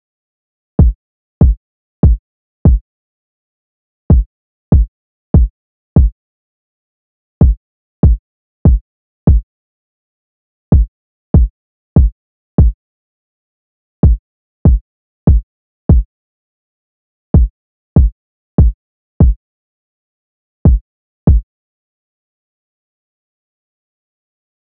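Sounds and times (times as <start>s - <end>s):
kick drum: 0.8s - 2.8s, 4.1s - 6.2s, 7.4s - 9.4s, 10.7s - 12.8s, 14.0s - 16.1s, 17.4s - 19.4s, 20.6s - 21.4s.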